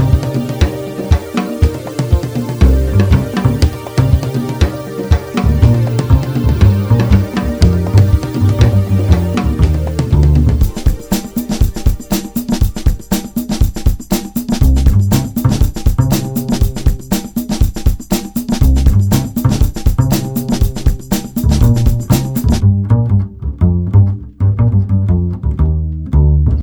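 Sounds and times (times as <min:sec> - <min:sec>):
music at 120 bpm: 0:00.0 - 0:26.6.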